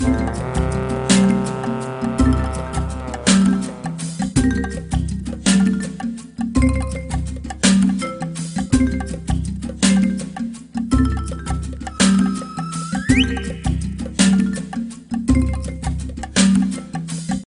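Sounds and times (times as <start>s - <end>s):
jungle level music: 0.0s - 17.4s.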